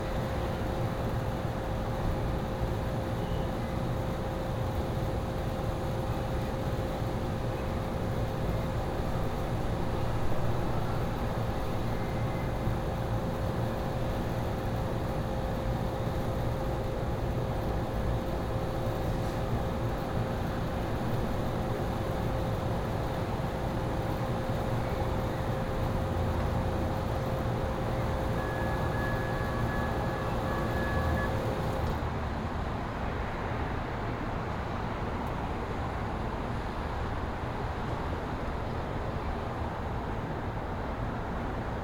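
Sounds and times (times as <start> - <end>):
light machine hum on a rooftop: 0.0 - 32.2
distant city traffic at sunset on a rooftop: 0.0 - 41.8.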